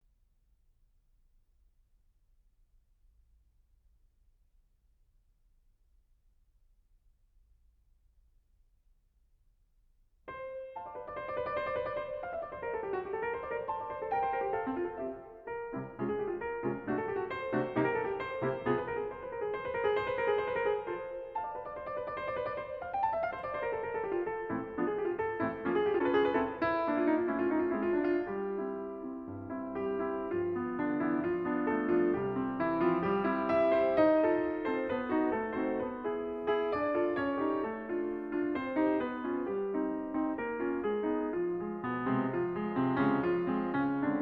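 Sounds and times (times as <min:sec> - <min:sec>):
sonatina in F major allegro vivace: 0:10.3 - 0:44.2.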